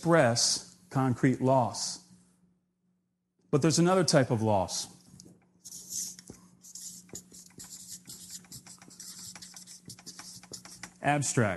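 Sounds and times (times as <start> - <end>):
speech: 0.0 - 2.0, 3.5 - 5.0, 11.0 - 11.5
marker drawing on a board: 5.6 - 11.0.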